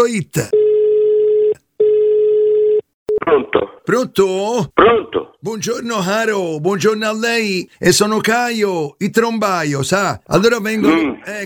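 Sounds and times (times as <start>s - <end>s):
speech: 0.0s - 0.6s, 3.2s - 11.4s
telephone electronic ring tone for a radio call-in: 0.5s - 3.2s.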